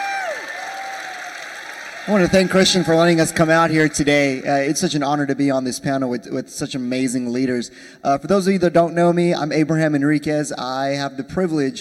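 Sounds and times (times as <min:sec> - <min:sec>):
high whoop sliding downward: 0:00.0 - 0:01.4
crowd applause: 0:00.0 - 0:05.0
speech: 0:02.0 - 0:11.7.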